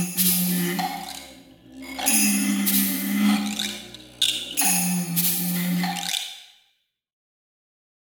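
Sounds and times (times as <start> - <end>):
glass on tine: 0.0 - 1.2, 1.9 - 6.3.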